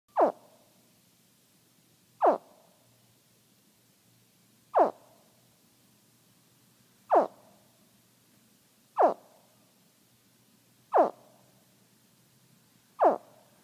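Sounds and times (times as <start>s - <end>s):
baby alligator calling for mother: 0.1s - 0.6s, 2.2s - 2.6s, 4.7s - 5.1s, 7.1s - 7.4s, 9.0s - 9.3s, 10.9s - 11.4s, 13.0s - 13.5s.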